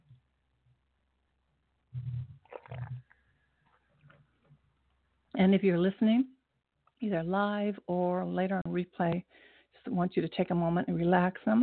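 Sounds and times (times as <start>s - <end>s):
person gulping a drink of water: 1.9s - 3.2s
speech: 5.4s - 6.4s, 7.0s - 11.6s.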